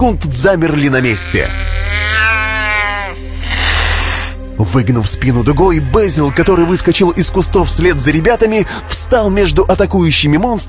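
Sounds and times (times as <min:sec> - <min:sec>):
speech: 0:00.0 - 0:02.3, 0:04.6 - 0:10.6
cat's piercing yowl: 0:01.0 - 0:03.2
cat hissing: 0:01.4 - 0:04.4.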